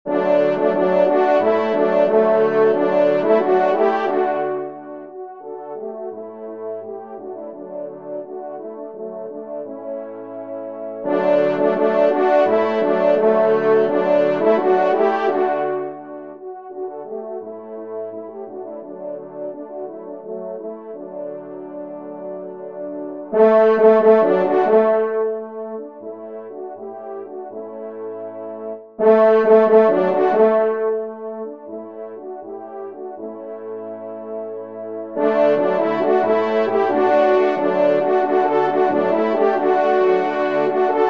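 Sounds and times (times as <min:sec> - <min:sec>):
trumpet fanfare: 0:00.1 - 0:07.6, 0:11.0 - 0:16.4, 0:23.3 - 0:27.6, 0:29.0 - 0:33.3, 0:35.2 - 0:41.0.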